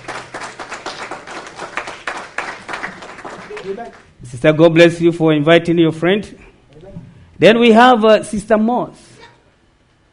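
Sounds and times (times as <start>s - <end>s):
audience clapping hands in welcome: 0.0s - 4.2s
speech: 3.6s - 6.4s, 7.4s - 9.0s.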